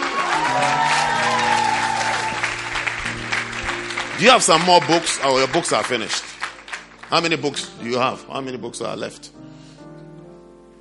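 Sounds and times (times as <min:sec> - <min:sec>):
audience clapping: 0:00.0 - 0:08.0
speech: 0:04.2 - 0:06.3, 0:07.1 - 0:09.4.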